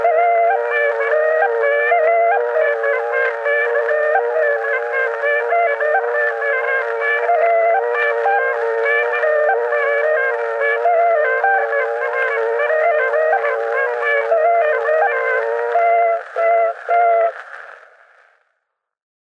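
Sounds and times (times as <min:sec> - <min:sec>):
bagpipe folk tune from Emmaste: 0:00.0 - 0:17.7.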